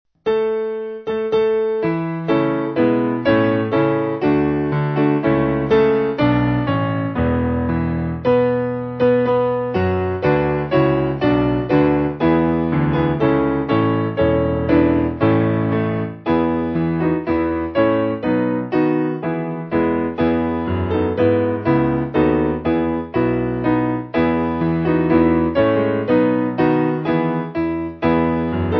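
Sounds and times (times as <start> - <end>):
piano: 0.1 - 28.7.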